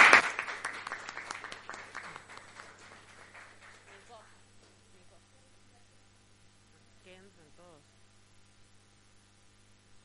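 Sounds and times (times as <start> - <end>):
applause in council chamber: 0.0 - 4.4.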